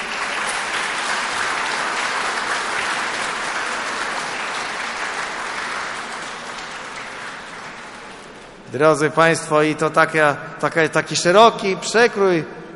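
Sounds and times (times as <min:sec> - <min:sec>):
audience applause: 0:00.0 - 0:08.6
speech: 0:08.7 - 0:12.7.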